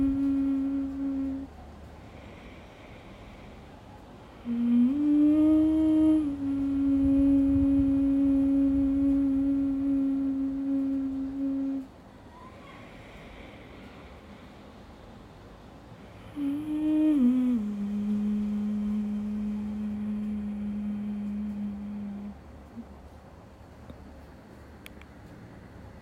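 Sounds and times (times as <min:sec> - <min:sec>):
person humming: 0:00.0 - 0:01.6, 0:04.3 - 0:12.4, 0:16.2 - 0:22.9.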